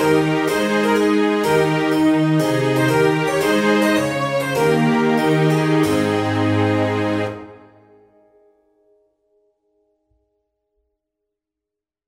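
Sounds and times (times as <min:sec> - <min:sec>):
trumpet tune: 0:00.0 - 0:07.9.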